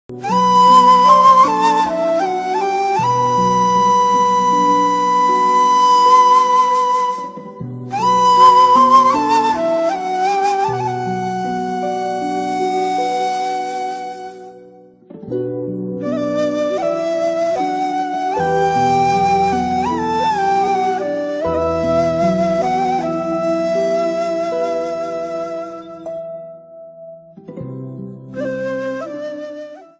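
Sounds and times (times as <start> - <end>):
Islamic music: 0.2 - 26.3.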